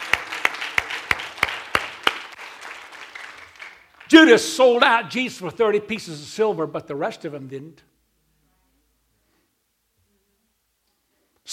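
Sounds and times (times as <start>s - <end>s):
audience clapping hands: 0.0s - 4.8s
speech: 4.1s - 7.9s.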